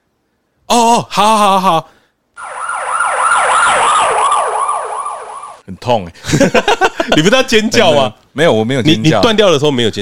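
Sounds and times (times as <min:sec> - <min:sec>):
speech: 0:00.9 - 0:02.0, 0:05.7 - 0:09.9
ambulance siren: 0:02.4 - 0:05.6
laughter: 0:06.2 - 0:08.0.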